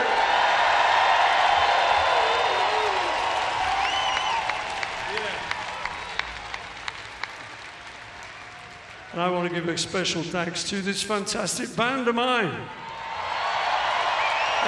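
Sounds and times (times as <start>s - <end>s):
large festival crowd applauding and cheering: 0.0s - 10.2s, 12.7s - 14.6s
whistles: 3.7s - 4.6s, 14.2s - 14.6s
speech: 9.2s - 12.8s.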